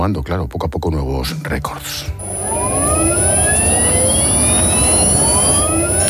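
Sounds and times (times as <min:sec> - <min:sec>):
speech: 0:00.0 - 0:02.6
electric car driving with a steady high whine: 0:02.2 - 0:06.0.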